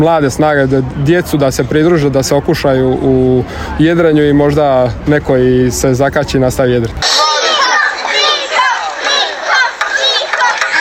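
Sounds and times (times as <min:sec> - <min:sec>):
speech: 0:00.0 - 0:07.2
children cheering and shouting on a town bridge during a sailing race: 0:07.0 - 0:10.7.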